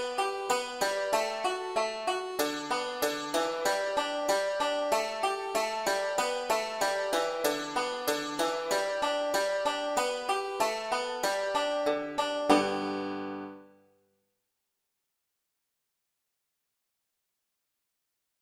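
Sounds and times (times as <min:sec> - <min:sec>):
Irish banjo melody in G: 0:00.0 - 0:13.7.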